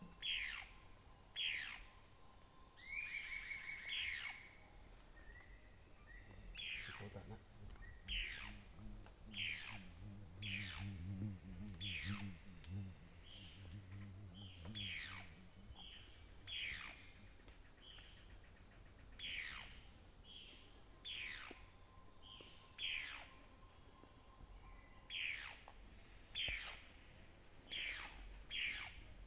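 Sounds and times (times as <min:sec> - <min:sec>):
insect drone: 0:00.0 - 0:29.2
bird calling: 0:06.2 - 0:17.3
low hum: 0:06.3 - 0:17.4.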